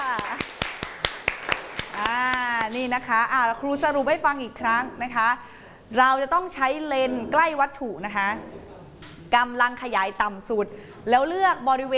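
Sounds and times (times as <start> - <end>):
classroom applause: 0.0 - 2.8
speech: 2.7 - 8.6, 9.3 - 11.9.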